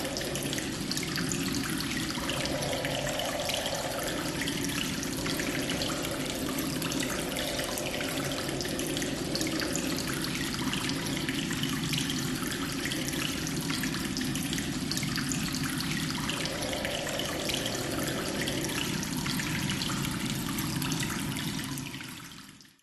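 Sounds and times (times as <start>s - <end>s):
strong howling wind through cave tunnels: 0.0s - 11.1s, 16.2s - 19.6s
water dripping in a reverberant cave: 0.0s - 22.7s.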